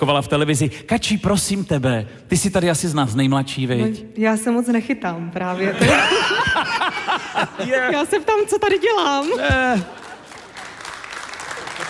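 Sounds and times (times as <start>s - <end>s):
speech: 0.0s - 10.0s
laughter: 5.5s - 8.5s, 9.3s - 10.9s
lukewarm applause on a television show: 9.1s - 11.8s.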